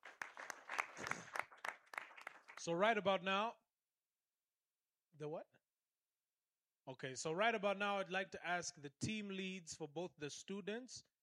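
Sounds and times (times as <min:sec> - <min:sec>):
small audience of students clapping at an evangelism gathering: 0:00.0 - 0:02.8
speech: 0:02.6 - 0:03.6, 0:05.2 - 0:05.6, 0:06.9 - 0:11.1.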